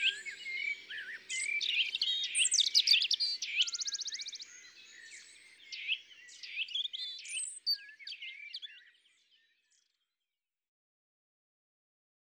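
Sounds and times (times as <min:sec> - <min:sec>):
European robin singing: 0:00.0 - 0:08.9.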